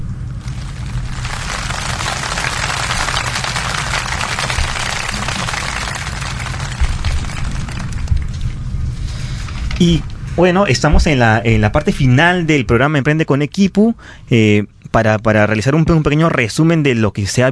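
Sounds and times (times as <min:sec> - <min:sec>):
crowd clapping: 0:00.4 - 0:08.6
speech: 0:09.8 - 0:17.5.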